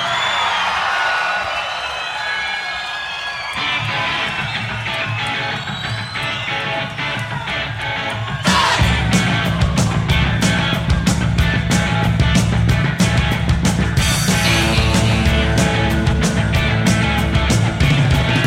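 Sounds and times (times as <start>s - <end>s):
whistles: 0.0s - 7.0s
large crowd shouting and cheering: 0.0s - 18.4s.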